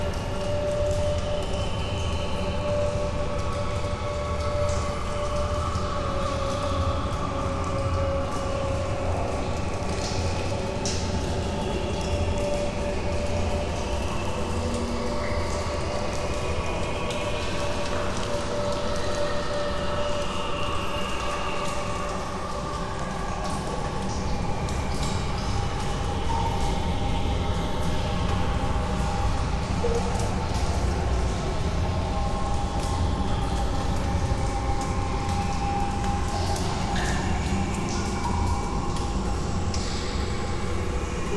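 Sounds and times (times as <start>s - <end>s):
cave ambience: 0.0s - 41.3s.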